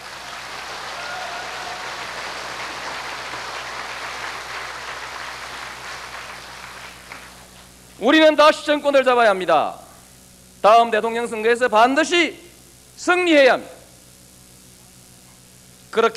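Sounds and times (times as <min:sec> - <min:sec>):
sustained applause from a large crowd: 0:00.0 - 0:07.5
speech: 0:08.0 - 0:09.8, 0:10.6 - 0:12.4, 0:13.0 - 0:13.8, 0:16.0 - 0:16.1.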